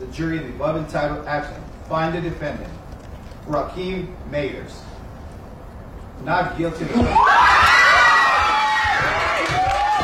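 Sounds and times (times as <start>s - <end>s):
speech: 0.1s - 2.8s, 3.4s - 4.9s, 6.2s - 7.5s
courtroom crowd cheering and shouting after a not guilty verdict: 6.9s - 10.0s.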